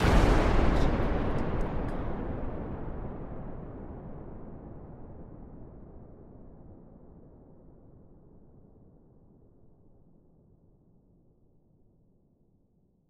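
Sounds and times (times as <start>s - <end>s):
explosion blast: 0.0s - 6.9s.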